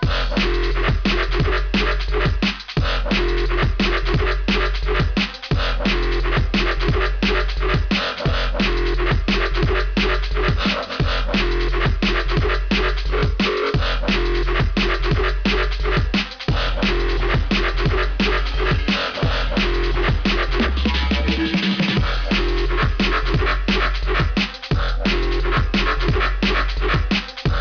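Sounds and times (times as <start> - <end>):
music: 0.0 - 27.5.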